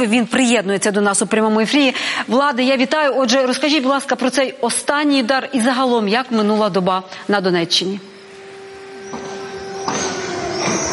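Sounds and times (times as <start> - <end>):
speech: 0.0 - 8.1
air raid siren: 8.1 - 10.9.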